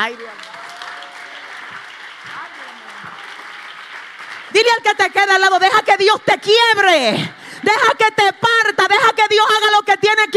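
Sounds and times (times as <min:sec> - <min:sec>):
speech: 0:00.0 - 0:00.6, 0:04.5 - 0:10.3
audience applause: 0:00.0 - 0:05.5.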